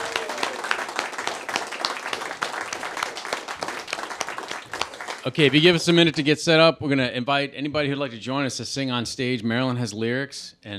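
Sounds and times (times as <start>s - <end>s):
audience applause: 0.0s - 6.2s
speech: 5.2s - 10.7s.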